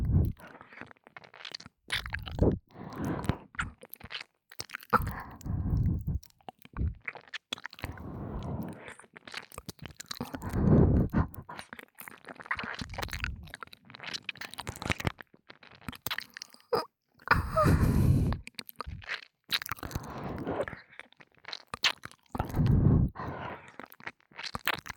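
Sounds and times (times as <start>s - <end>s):
ASMR ear licking sounds: 0.0s - 16.6s, 17.3s - 24.9s
ASMR breathy sighs: 2.4s - 3.6s, 5.0s - 6.2s, 7.8s - 9.0s, 10.2s - 11.6s, 17.3s - 18.4s, 19.8s - 20.8s, 22.4s - 23.8s.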